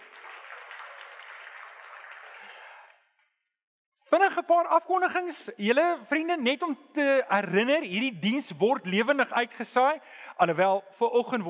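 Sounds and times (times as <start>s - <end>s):
audience clapping hands: 0.0s - 3.0s
speech: 4.1s - 11.4s.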